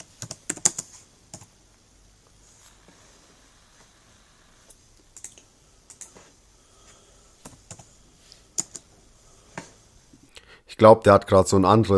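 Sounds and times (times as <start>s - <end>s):
computer keyboard typing: 0.0s - 1.6s, 5.2s - 6.1s, 7.4s - 7.9s, 8.6s - 8.9s
speech: 10.8s - 11.9s.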